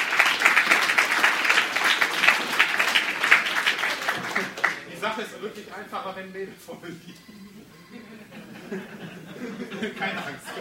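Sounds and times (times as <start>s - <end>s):
audience applause: 0.0s - 5.0s
speech: 5.2s - 7.5s, 8.7s - 9.0s, 9.6s - 10.5s
laughter: 6.6s - 10.5s.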